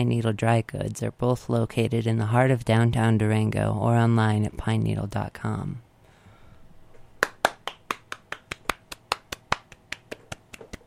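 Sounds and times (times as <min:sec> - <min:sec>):
speech: 0:00.0 - 0:05.8
live studio audience clapping: 0:07.2 - 0:10.8.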